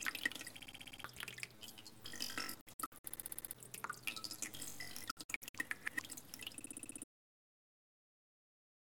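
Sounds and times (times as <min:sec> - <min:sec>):
glitchy water: 0:00.0 - 0:07.1.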